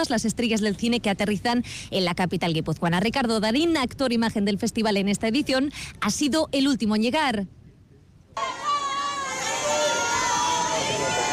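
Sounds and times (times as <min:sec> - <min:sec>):
speech: 0:00.0 - 0:07.6
fans screaming at a star's arrival: 0:08.4 - 0:11.3.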